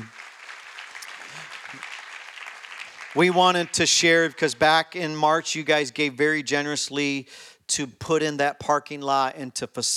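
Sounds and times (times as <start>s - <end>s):
audience applause: 0.0s - 4.0s
speech: 3.2s - 9.9s.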